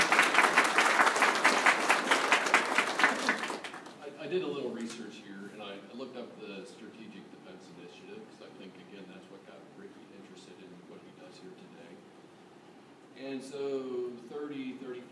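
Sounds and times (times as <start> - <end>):
audience applause: 0.0 - 4.0
speech: 13.2 - 15.1.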